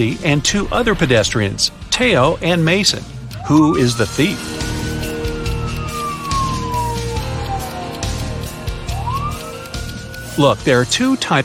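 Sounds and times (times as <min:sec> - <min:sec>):
speech: 0:00.0 - 0:04.7, 0:10.4 - 0:11.4
low rumble of traffic or engine noise: 0:00.0 - 0:11.1
ambulance and police siren: 0:03.4 - 0:10.7.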